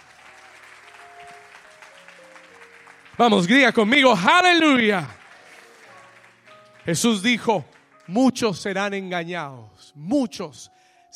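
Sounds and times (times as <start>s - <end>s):
audience applause: 0.0s - 8.2s
speech: 3.2s - 5.2s, 6.8s - 11.1s.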